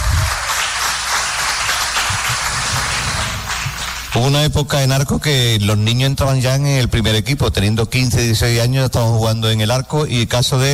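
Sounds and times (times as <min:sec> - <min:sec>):
audience applause: 0:00.0 - 0:04.3
speech: 0:04.2 - 0:10.7.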